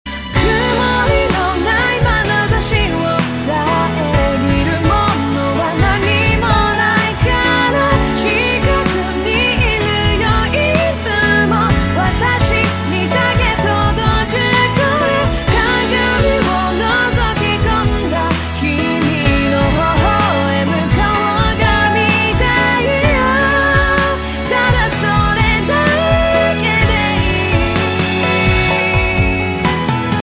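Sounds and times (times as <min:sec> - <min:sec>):
acoustic song: 0:00.1 - 0:30.2.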